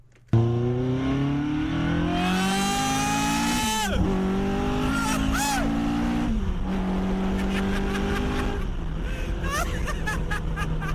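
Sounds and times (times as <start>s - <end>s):
CSR 260 sports car accelerating hard with gear changes: 0.3s - 9.0s
laughter: 9.4s - 10.9s.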